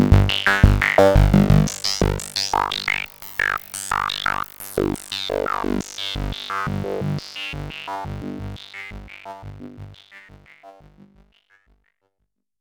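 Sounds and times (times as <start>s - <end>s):
analog synthesizer sequence with filter modulation: 0.0s - 10.0s.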